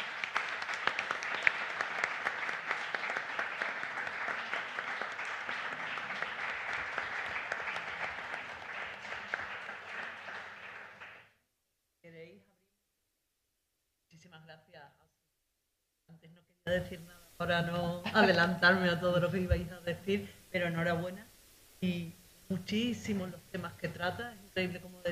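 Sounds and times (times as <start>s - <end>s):
audience applause: 0.0s - 11.3s
speech: 16.7s - 25.1s.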